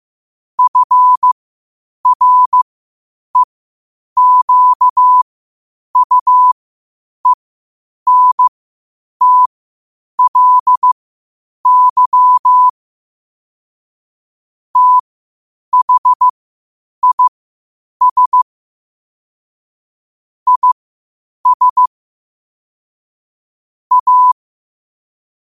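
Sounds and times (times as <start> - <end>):
morse code at 5 wpm: 0.6 - 1.4, 2.0 - 2.6, 4.2 - 5.2, 6.0 - 6.6, 8.1 - 8.5, 9.2 - 9.5, 10.2 - 11.0, 11.6 - 12.7, 14.8 - 15.0, 15.7 - 16.3, 17.0 - 17.3, 18.0 - 18.4, 20.5 - 20.8, 21.4 - 21.9, 23.9 - 24.4.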